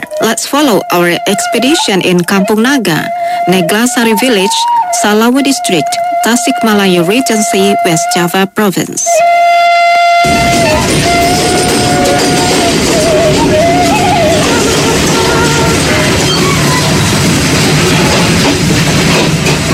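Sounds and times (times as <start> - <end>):
speech: 0.3 - 11.1
roaring diesel train engine: 9.3 - 19.7.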